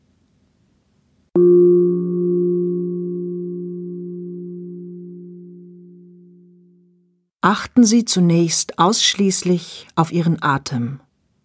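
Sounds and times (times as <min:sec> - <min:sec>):
singing bowl gong struck: 0:01.4 - 0:06.8
speech: 0:07.4 - 0:11.0.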